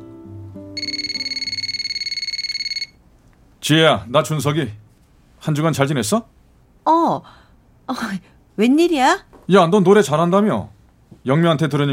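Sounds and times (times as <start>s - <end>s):
electronic telephone ringing: 0.8s - 3.0s
speech: 3.6s - 4.8s, 5.4s - 11.9s.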